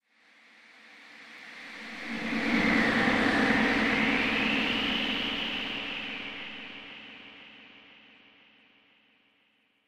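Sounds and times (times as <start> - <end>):
graveyard wind: 0.6 - 8.5.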